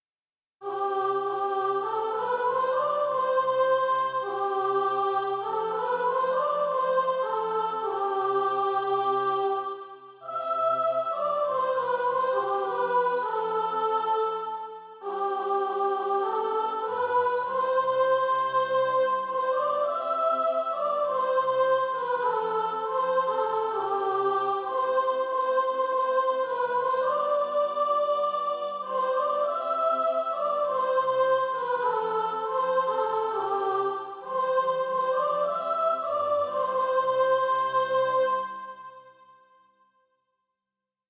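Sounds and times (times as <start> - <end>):
soprano singing practice music: 0.6 - 39.1.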